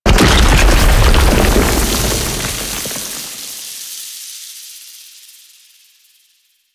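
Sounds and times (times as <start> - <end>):
octopede creature death dissolve: 0.1 - 3.4.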